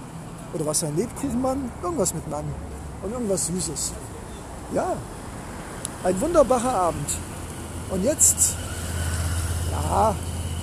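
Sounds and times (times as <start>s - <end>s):
urban street traffic: 0.0s - 10.6s
speech: 0.5s - 5.2s, 6.0s - 7.3s, 7.9s - 8.6s, 9.8s - 10.3s
low engine drone from a passing vehicle: 6.2s - 10.6s.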